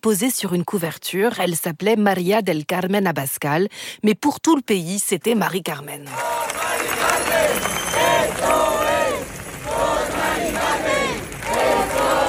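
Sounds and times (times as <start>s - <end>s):
speech: 0.0s - 6.4s
large crowd chanting a woman's name: 6.1s - 12.2s.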